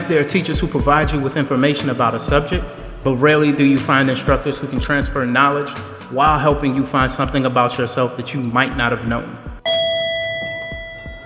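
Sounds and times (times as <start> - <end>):
speech: 0.1 - 9.5
elevator chime: 9.7 - 11.2.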